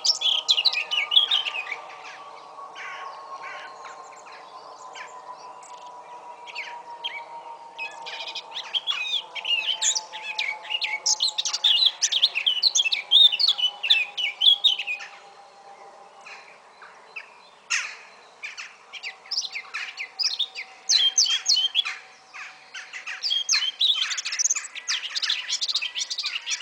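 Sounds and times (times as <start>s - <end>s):
low hum: 0.0s - 20.9s
Eurasian blackcap warbled song: 0.0s - 26.6s.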